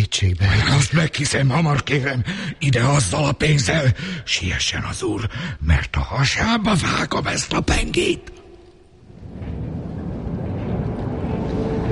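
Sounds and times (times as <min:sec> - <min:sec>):
speech: 0:00.2 - 0:08.4
distant tram rumbling: 0:09.0 - 0:11.9.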